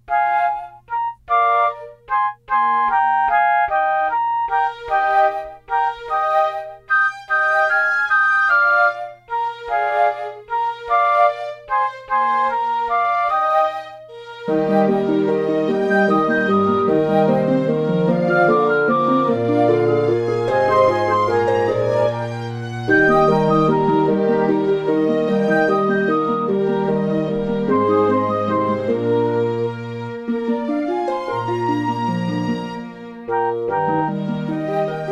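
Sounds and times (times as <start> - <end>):
instrumental fantasie: 0.0 - 35.1.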